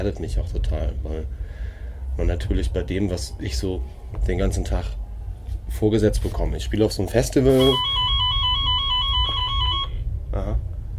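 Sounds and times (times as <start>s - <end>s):
speech: 0.0s - 5.0s, 5.7s - 8.1s
constant low rumble: 0.0s - 10.9s
walkie-talkie radios beeping: 7.5s - 10.0s.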